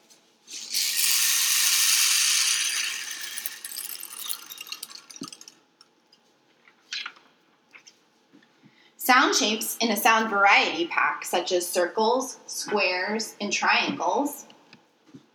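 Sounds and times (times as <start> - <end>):
colorful plastic rain stick being shaken: 0.5 - 5.5
speech: 9.1 - 14.5.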